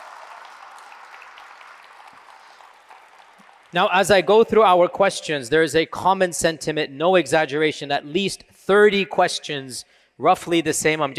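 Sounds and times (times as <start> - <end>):
audience applause: 0.0 - 4.2
speech: 3.7 - 11.1.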